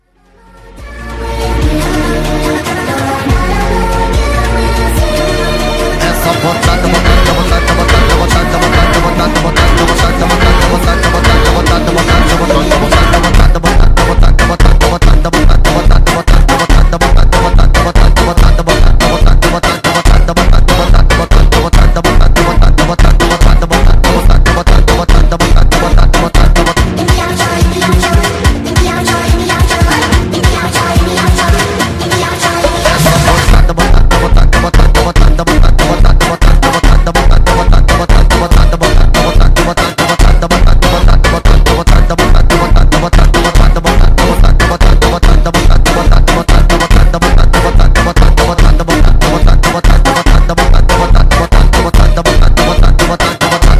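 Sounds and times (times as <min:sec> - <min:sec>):
sped-up funk music: 0:00.0 - 0:53.7.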